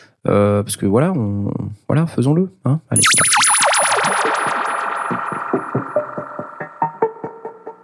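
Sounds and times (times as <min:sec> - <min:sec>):
speech: 0:00.2 - 0:03.4, 0:05.1 - 0:06.9
strange modular synthesizer sounds: 0:03.0 - 0:07.4.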